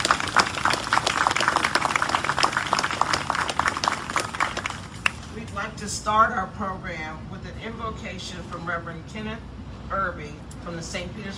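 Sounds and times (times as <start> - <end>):
crowd clapping: 0.0 - 5.4
speech: 5.9 - 11.3.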